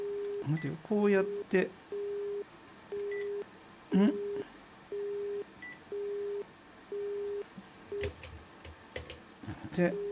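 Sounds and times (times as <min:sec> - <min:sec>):
telephone busy signal beeping: 0:00.0 - 0:03.4, 0:04.1 - 0:08.1, 0:09.9 - 0:10.1
speech: 0:00.4 - 0:01.9, 0:03.9 - 0:04.2, 0:09.8 - 0:10.1.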